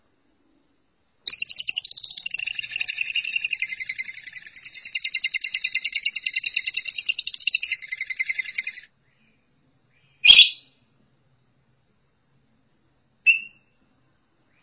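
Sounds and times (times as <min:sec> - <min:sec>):
lovebird chattering song: 0:01.3 - 0:08.9.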